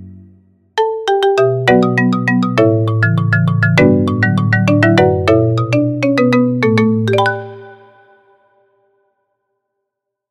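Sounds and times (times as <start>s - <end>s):
marimba: 0.8s - 8.3s.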